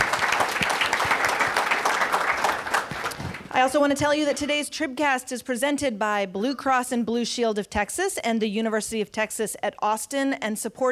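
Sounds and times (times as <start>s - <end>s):
audience applause: 0.0s - 3.6s
speech: 3.6s - 10.9s.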